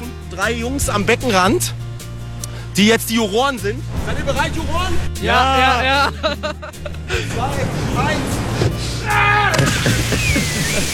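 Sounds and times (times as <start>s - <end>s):
speech: 0.4s - 1.8s, 2.8s - 10.9s
laughter: 5.5s - 7.6s, 9.8s - 10.9s
shrill yell: 9.0s - 9.8s
cannonball jump splash into swimming pool: 9.5s - 10.9s.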